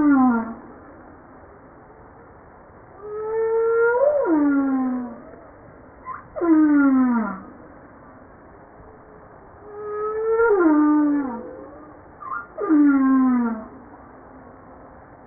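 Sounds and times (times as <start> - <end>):
humpback whale descending harmonic moans: 0.0 - 0.7, 3.0 - 7.6, 9.6 - 13.8.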